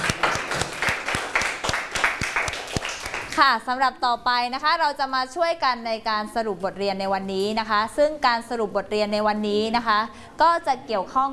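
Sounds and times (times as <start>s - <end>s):
classroom applause: 0.0s - 3.4s
speech: 3.4s - 11.3s.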